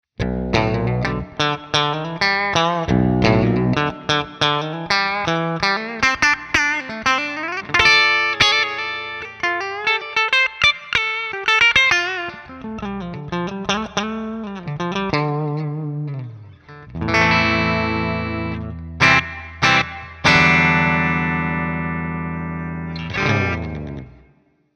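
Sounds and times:
LTD baritone electric guitar with clean coil-split tone: 0.2 - 24.5.

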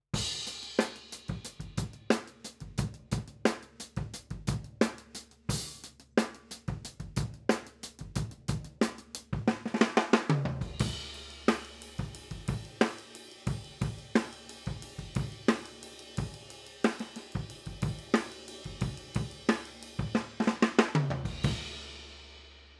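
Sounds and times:
drum overheads: 0.0 - 22.7.

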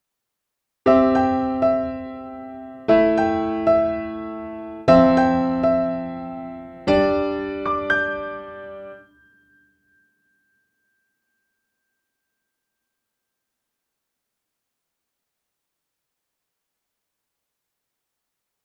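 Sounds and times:
piano without effects through Korg SDD 3000: 0.9 - 10.0.

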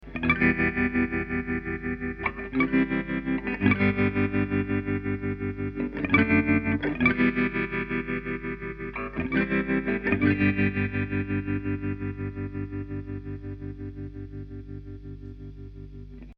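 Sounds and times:
clean guitar with tremolo: 0.0 - 16.3.

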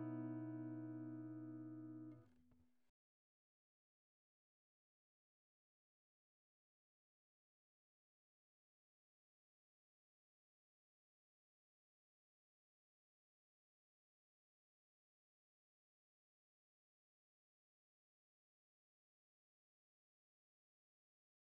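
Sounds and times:
Takamine FT340 BS acoustic guitar through pickup, flat: 0.0 - 2.3.

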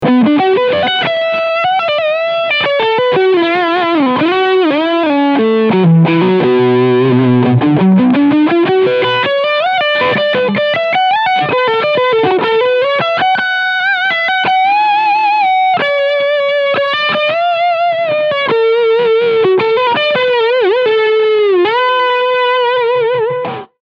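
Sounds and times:
Strawberry Red DLX full gain distortion with EQ at 12 o'clock: 0.0 - 23.7.

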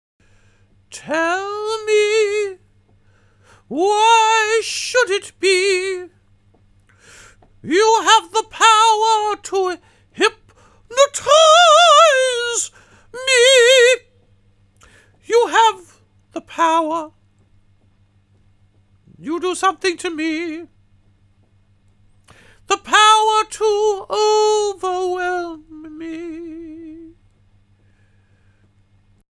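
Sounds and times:
dry singing voice: 0.9 - 2.6, 3.6 - 6.2, 7.1 - 14.1, 14.8 - 17.2, 19.1 - 20.7, 22.3 - 27.2.

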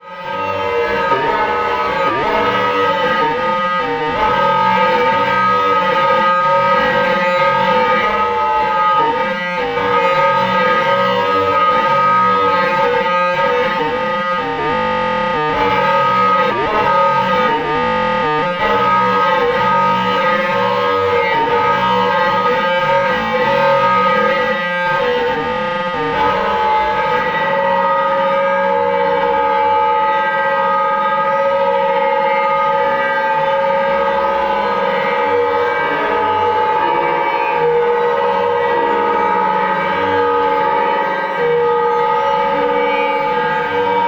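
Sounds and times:
Korg volca modular synth: 0.0 - 44.0.

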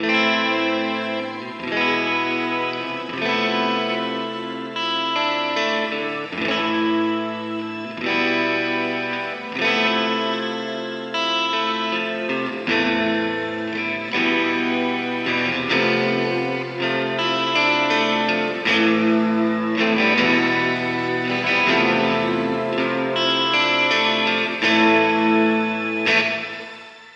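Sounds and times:
Nux MG-30 shimmer reverb: 0.0 - 27.1.

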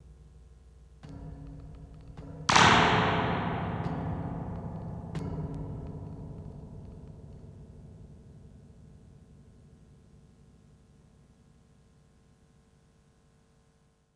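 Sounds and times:
Echo Fix EF X2 spring bounce echo effect: 2.5 - 5.5.

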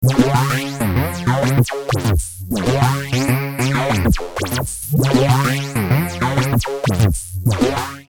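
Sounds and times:
synthesizer filter sweep: 0.0 - 8.0.

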